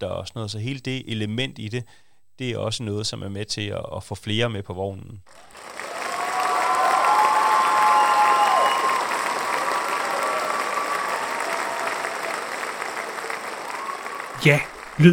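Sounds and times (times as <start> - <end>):
speech: 0.0 - 5.8, 14.4 - 15.1
applause: 5.3 - 15.1.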